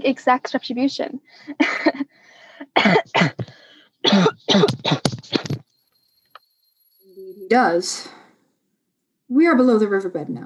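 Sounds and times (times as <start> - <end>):
speech: 0.0 - 2.2, 2.8 - 5.6, 7.2 - 8.2, 9.3 - 10.4
harsh rasping coughing fit: 2.6 - 5.6.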